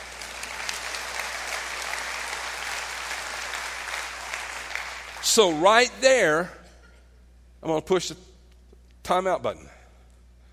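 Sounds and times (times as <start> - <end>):
audience hand clapping: 0.0 - 5.8
speech: 5.2 - 6.6, 7.6 - 8.3, 9.1 - 9.8.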